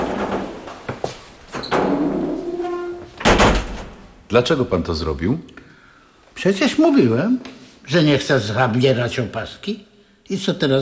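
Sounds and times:
door being closed: 0.0s - 4.1s
speech: 4.3s - 5.6s, 6.4s - 10.8s.

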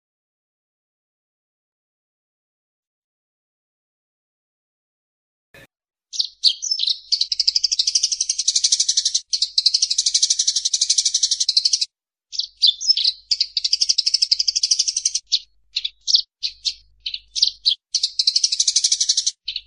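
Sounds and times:
bird song of high sharp chirps: 5.6s - 19.6s.

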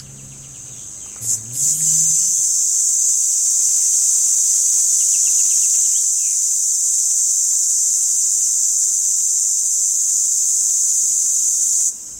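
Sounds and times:
male red cicada Tibicina hematodes calling song: 0.0s - 12.1s.

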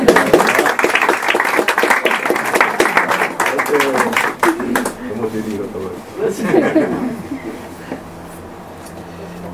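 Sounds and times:
audience applauding: 0.0s - 5.1s
laughter: 6.2s - 8.0s.

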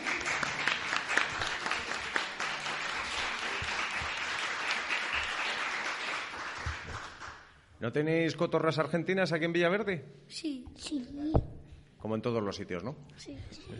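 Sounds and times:
applause: 0.0s - 7.6s
speech: 7.8s - 13.7s.

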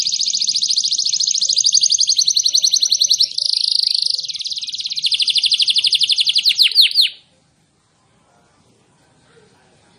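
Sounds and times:
canary singing: 0.0s - 7.3s.

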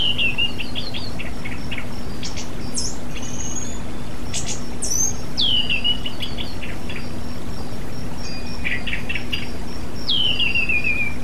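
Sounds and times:
Oriental magpie-robin song with slurred whistles and buzzy notes: 0.0s - 7.2s, 8.0s - 11.2s.

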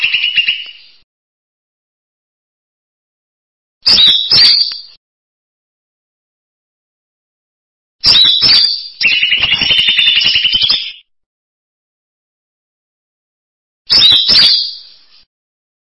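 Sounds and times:
bird song: 0.0s - 1.0s, 3.8s - 5.0s, 8.0s - 11.1s, 13.9s - 15.3s.

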